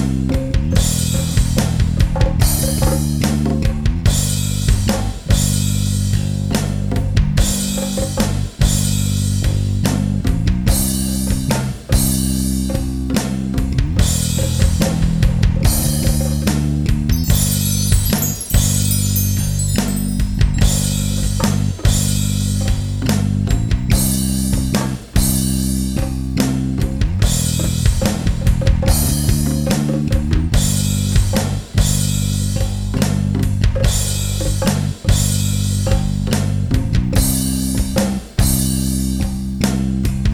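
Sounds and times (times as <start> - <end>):
bass guitar: 0.0 - 40.3.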